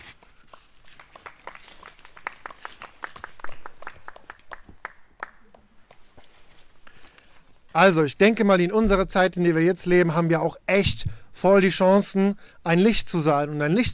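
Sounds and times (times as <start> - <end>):
applause: 0.5 - 6.1
speech: 7.8 - 13.9.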